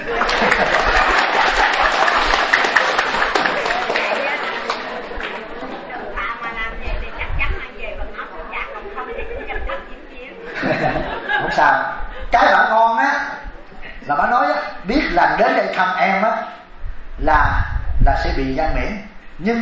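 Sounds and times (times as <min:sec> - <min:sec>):
people chuckling: 0:00.0 - 0:05.7, 0:08.8 - 0:12.4
audience applause: 0:00.0 - 0:05.8
chatter: 0:00.0 - 0:18.0
speech: 0:19.4 - 0:19.5.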